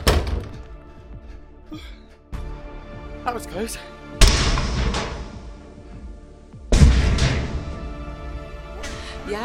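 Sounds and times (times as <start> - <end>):
heavy door slamming: 0.0 - 0.6, 4.2 - 5.6, 6.7 - 8.1
speech: 1.7 - 2.0, 3.2 - 4.5.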